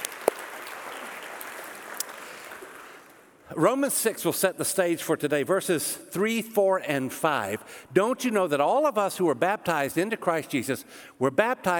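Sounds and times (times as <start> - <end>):
audience clapping: 0.0 - 3.4
speech: 3.5 - 11.7.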